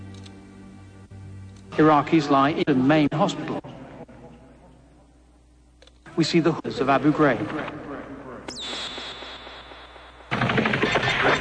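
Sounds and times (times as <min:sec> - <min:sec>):
high whine: 0:00.0 - 0:11.3
speech: 0:01.8 - 0:03.7, 0:06.2 - 0:07.9
gunfire during an insurgent attack in Iraq: 0:08.5 - 0:11.3.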